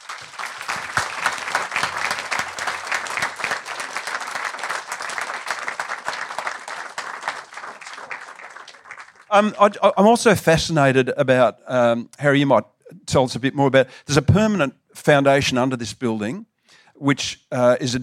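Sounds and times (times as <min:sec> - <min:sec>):
audience applause: 0:00.0 - 0:09.6
speech: 0:09.3 - 0:18.0.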